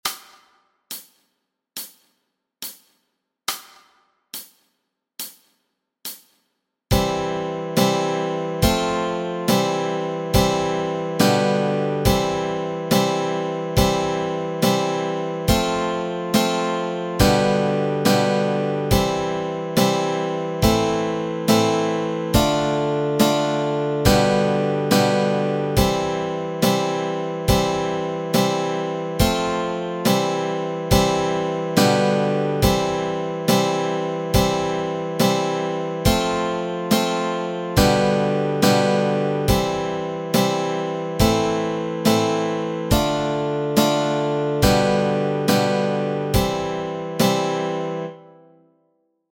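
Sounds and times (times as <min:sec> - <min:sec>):
easy guitar chords: 0:06.9 - 0:48.7.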